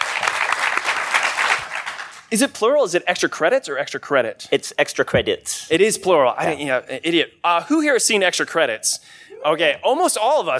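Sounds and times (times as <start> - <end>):
audience clapping: 0.0 - 2.3
speech: 2.3 - 10.5.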